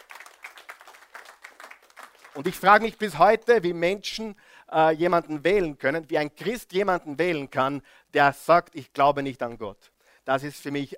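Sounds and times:
audience clapping: 0.0s - 2.9s
speech: 2.4s - 10.9s.

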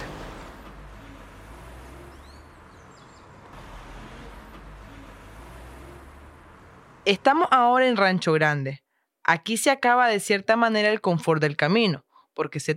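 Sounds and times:
car engine and tyre noise driving along a road: 0.0s - 8.0s
bird chirps: 2.0s - 3.5s
speech: 7.1s - 12.7s.

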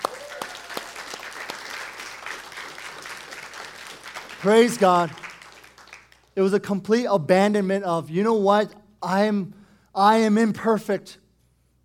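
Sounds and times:
round of applause: 0.0s - 6.4s
speech: 4.4s - 5.2s, 6.4s - 11.2s.

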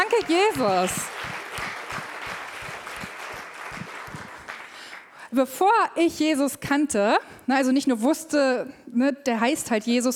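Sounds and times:
audience applause: 0.0s - 5.1s
speech: 0.2s - 1.4s, 5.3s - 10.1s.

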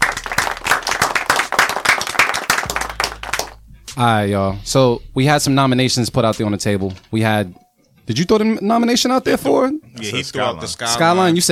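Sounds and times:
people clapping: 0.0s - 3.6s
speech: 4.0s - 11.5s.

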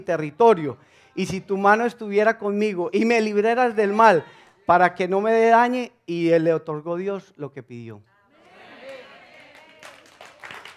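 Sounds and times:
speech: 0.0s - 8.1s
audience applause: 8.6s - 10.7s.

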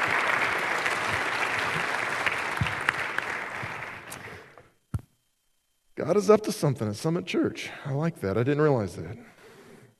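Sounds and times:
audience applause: 0.0s - 4.5s
speech: 6.0s - 9.4s.

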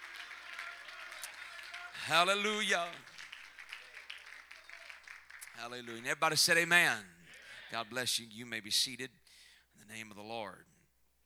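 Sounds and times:
audience clapping hands: 0.0s - 7.0s
speech: 2.1s - 3.1s, 5.6s - 9.2s, 9.8s - 10.7s.

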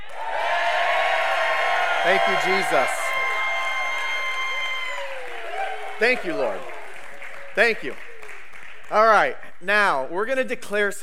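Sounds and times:
audience cheering and yelling: 0.0s - 7.4s
speech: 2.0s - 3.0s, 6.0s - 6.7s, 7.6s - 8.0s, 8.9s - 11.0s.

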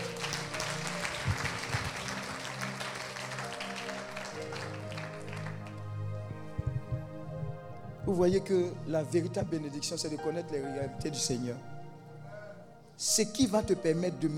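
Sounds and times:
congregation applauding in church: 0.0s - 7.1s
sustained keyboard-like music: 0.0s - 14.3s
speech: 8.1s - 11.8s, 13.0s - 14.3s.

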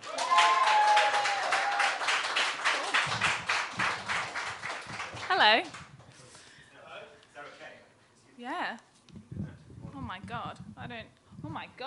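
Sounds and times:
person cheering: 0.0s - 2.0s
audience applause welcoming a poet at a poetry reading event: 0.0s - 5.8s.

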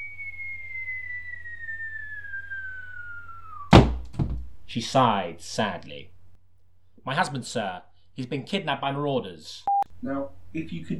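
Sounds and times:
descending whistle tone of a hat falling: 0.0s - 3.9s
loud crash of hat hitting the ground: 3.4s - 4.5s
speech: 4.7s - 6.1s, 7.0s - 10.9s.

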